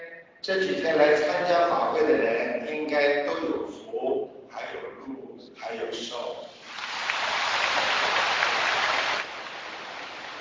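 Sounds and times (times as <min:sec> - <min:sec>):
speech: 0:00.4 - 0:06.5
audience applause: 0:06.7 - 0:10.3.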